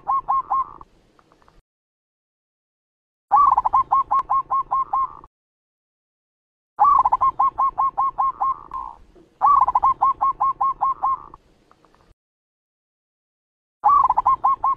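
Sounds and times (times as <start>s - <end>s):
zebra dove cooing song: 0.0s - 0.8s, 3.3s - 5.3s, 6.8s - 11.4s, 13.8s - 14.7s.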